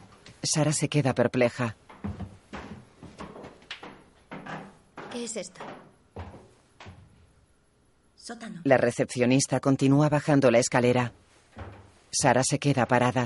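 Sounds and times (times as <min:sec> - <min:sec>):
speech: 0:00.4 - 0:02.2, 0:05.2 - 0:05.9, 0:08.3 - 0:11.2, 0:12.1 - 0:13.2
door being opened: 0:01.9 - 0:07.1, 0:11.5 - 0:12.2.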